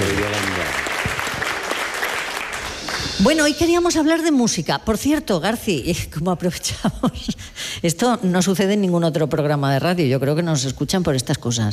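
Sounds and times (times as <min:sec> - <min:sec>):
applause: 0:00.0 - 0:03.2
speech: 0:03.2 - 0:11.7.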